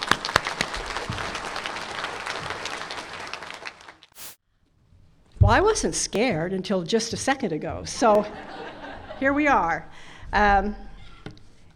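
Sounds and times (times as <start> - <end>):
audience clapping: 0.0 - 4.2
speech: 5.5 - 10.8
laughter: 8.2 - 9.4.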